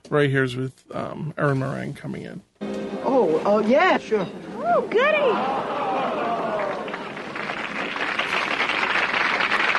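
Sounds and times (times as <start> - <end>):
speech: 0.1 - 2.5, 3.1 - 5.8
audience applause: 5.2 - 9.7.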